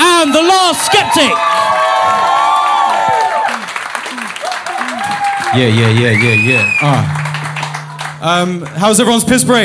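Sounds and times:
speech: 0.7 - 1.7, 5.5 - 7.2, 8.2 - 9.6
audience applause: 0.9 - 8.8.

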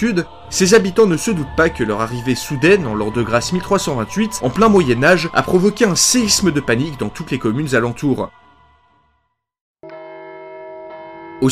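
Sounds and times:
speech: 0.0 - 8.4
church alarm bell ringing: 9.8 - 11.5.

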